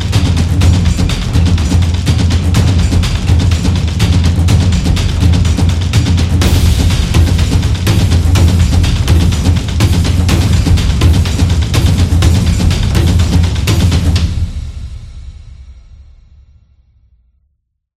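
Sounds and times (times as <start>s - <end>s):
taiko drums: 0.0s - 16.0s.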